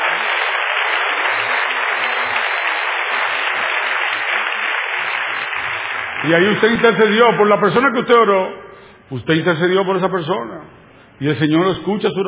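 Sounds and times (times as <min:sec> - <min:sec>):
crowd applauding: 0:00.0 - 0:07.4
speech: 0:06.2 - 0:12.2.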